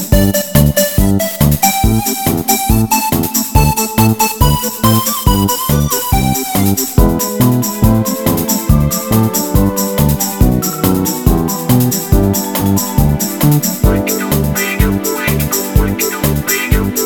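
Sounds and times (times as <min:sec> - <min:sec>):
karaoke singing: 0:00.1 - 0:17.0.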